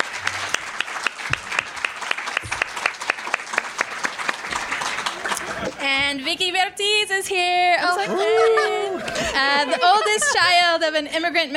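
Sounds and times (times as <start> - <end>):
audience applause: 0.0 - 5.8
laughter: 4.9 - 5.9, 7.8 - 10.8
speech: 6.1 - 11.5.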